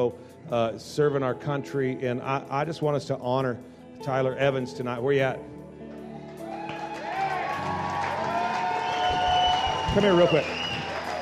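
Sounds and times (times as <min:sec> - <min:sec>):
speech: 0:00.0 - 0:05.6, 0:10.0 - 0:10.6
audience clapping and cheering: 0:06.2 - 0:11.1.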